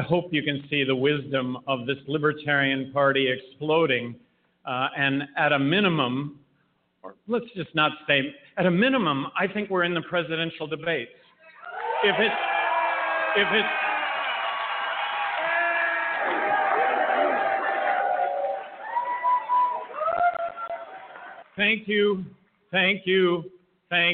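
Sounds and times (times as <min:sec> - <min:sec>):
speech: 0:00.0 - 0:06.4, 0:07.0 - 0:11.2, 0:12.0 - 0:12.5, 0:13.3 - 0:13.8, 0:21.6 - 0:24.1
loud crowd cheering and whooping: 0:11.5 - 0:21.6.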